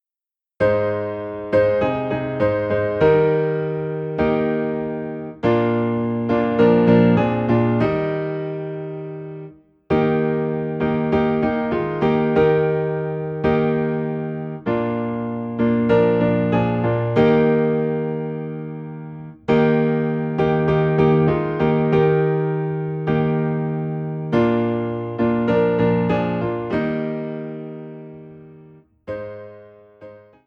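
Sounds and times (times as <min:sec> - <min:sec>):
piano piece in E flat: 0:00.6 - 0:30.4.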